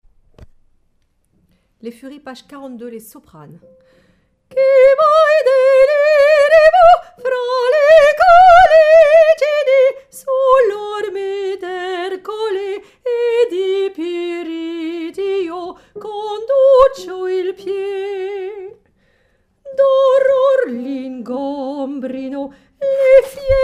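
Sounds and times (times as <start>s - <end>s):
soprano singing: 4.5s - 18.8s, 19.6s - 23.6s.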